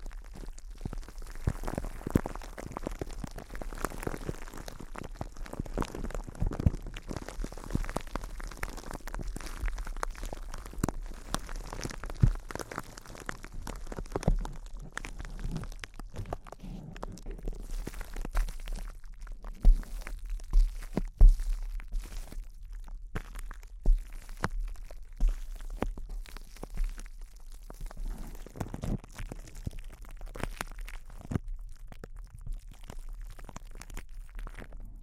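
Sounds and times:
intense close-up crinkles: 0.0s - 35.0s
low rumbling: 6.8s - 20.5s.

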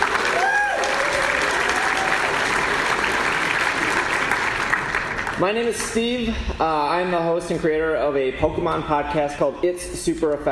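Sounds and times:
audience round of applause: 0.0s - 5.4s
speech: 5.4s - 10.5s.

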